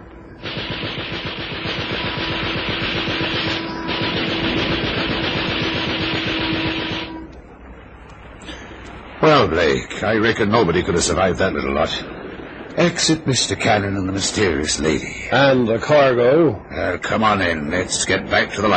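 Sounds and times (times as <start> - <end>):
machine gun fire from a boat: 0.4 - 7.2
speech: 9.2 - 12.2, 12.8 - 18.7.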